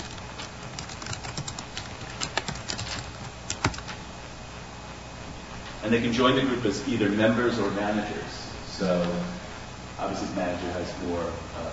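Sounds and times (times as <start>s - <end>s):
typing on a computer keyboard: 0.0s - 3.9s
soft hiss: 0.0s - 11.7s
speech: 5.8s - 9.4s, 10.0s - 11.7s.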